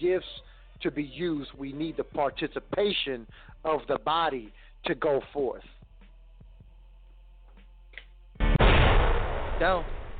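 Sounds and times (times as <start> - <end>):
speech: 0.0 - 5.8, 9.6 - 10.0
bomb explosion sound effect on a live radio show: 8.4 - 10.1.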